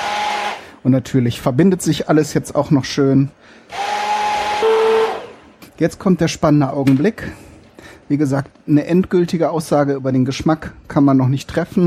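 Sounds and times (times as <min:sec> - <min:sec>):
electric blender chopping onion and apple pieces for homemade ketchup: 0:00.0 - 0:00.7, 0:03.7 - 0:05.4
speech: 0:00.8 - 0:03.8, 0:05.8 - 0:07.5, 0:08.1 - 0:11.8.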